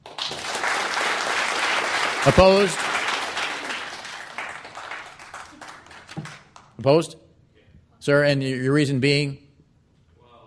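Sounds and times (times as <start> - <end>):
audience applause: 0.0 - 6.7
speech: 2.2 - 2.8, 6.8 - 7.2, 8.0 - 9.4.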